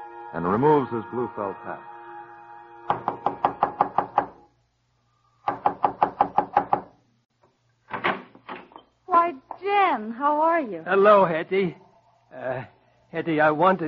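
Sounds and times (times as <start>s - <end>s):
speech: 0.3s - 1.9s, 10.2s - 13.8s
knocking on a door: 2.9s - 4.4s, 5.4s - 6.9s.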